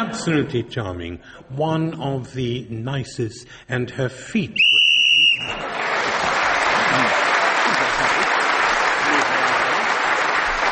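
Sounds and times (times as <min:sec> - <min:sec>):
speech: 0:00.0 - 0:04.7, 0:05.4 - 0:05.8
game show whistle blowing: 0:04.6 - 0:05.7
laughter: 0:05.4 - 0:10.1.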